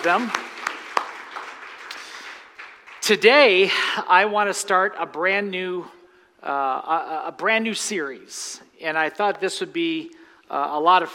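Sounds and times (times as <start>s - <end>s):
speech: 0.0s - 0.5s, 3.1s - 11.1s
audience applauding: 0.0s - 3.6s.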